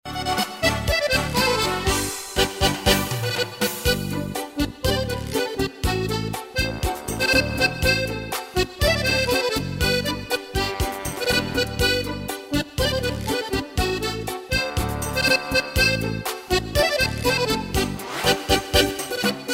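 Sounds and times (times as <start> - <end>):
organette playing cha cha: 0.1 - 19.5.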